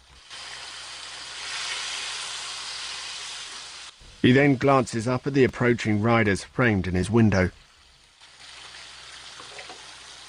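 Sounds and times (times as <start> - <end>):
bacon and eggs frying on a stove: 0.0 - 6.2, 7.2 - 10.2
speech: 4.2 - 7.6.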